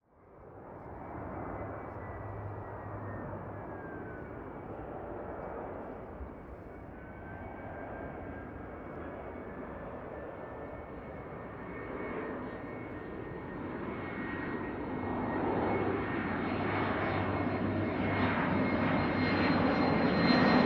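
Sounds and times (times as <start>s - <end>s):
airplane flyover landing at Heathrow: 0.1s - 20.6s.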